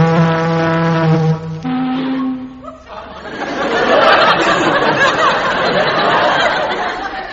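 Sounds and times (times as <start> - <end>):
ship's siren blast: 0.0 - 2.8
laughter: 2.1 - 7.3.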